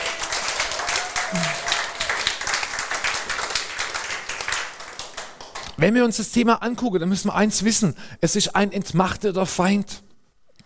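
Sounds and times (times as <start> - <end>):
crowd applauding: 0.0 - 5.8
speech: 1.3 - 1.5, 5.8 - 10.0.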